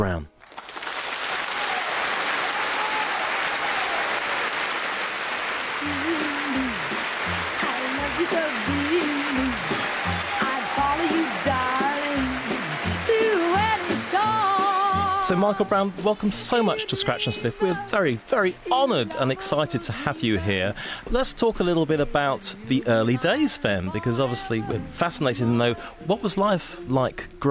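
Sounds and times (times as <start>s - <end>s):
speech: 0.0s - 0.3s, 15.3s - 27.4s
round of applause: 0.4s - 15.6s.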